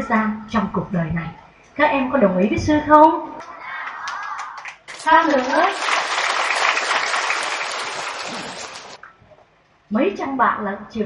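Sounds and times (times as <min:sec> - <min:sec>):
speech: 0:00.1 - 0:03.6, 0:05.0 - 0:05.9, 0:09.9 - 0:11.0
students applauding at a gathering: 0:03.8 - 0:09.0.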